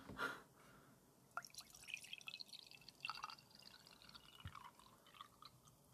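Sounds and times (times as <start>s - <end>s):
tea pouring: 1.4s - 5.9s.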